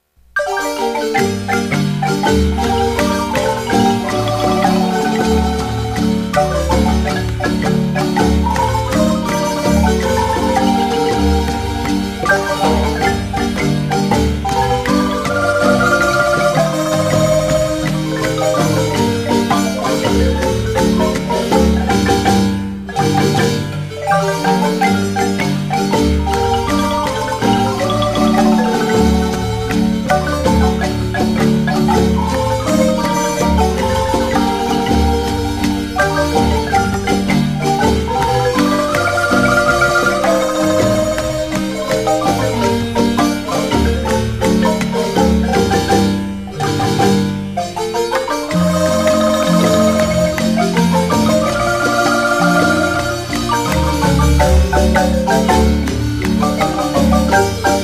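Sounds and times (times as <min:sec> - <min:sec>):
marimba: 0:00.2 - 0:57.8.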